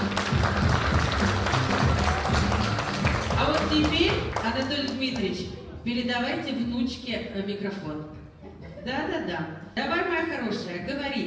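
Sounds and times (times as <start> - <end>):
applause: 0.0 - 5.4
speech: 4.6 - 8.2, 8.8 - 11.2.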